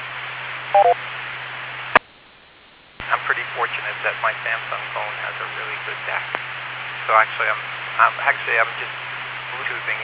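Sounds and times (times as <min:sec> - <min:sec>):
radio static hiss with a low hum: 0:00.0 - 0:10.0
quick electronic beeps: 0:00.8 - 0:01.0
speech: 0:03.6 - 0:10.0.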